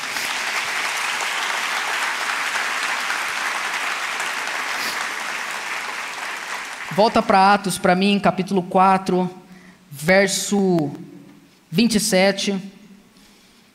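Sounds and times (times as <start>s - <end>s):
audience applauding: 0.0s - 7.7s
speech: 6.9s - 11.1s, 11.7s - 12.7s.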